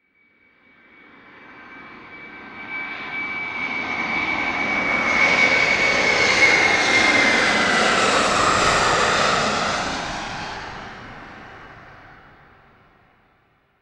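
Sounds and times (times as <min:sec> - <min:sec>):
commercial jet plane passing low: 0:00.9 - 0:13.2.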